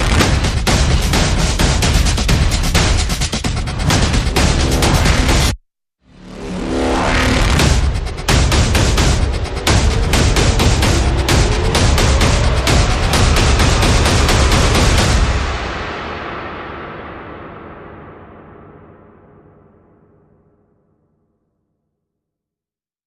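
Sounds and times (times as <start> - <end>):
percussion: 0.0 - 5.6, 7.4 - 17.2
sound effects: 0.0 - 18.8.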